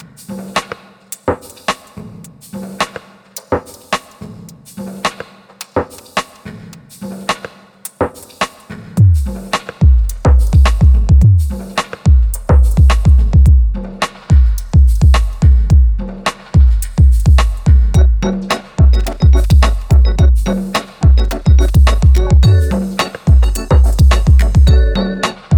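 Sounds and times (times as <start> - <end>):
drum break fragment: 0.0 - 25.5.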